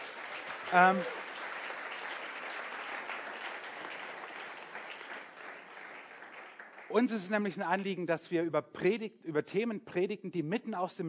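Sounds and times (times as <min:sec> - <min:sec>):
audience applause: 0:00.0 - 0:07.3
speech: 0:00.7 - 0:01.2, 0:06.9 - 0:11.0.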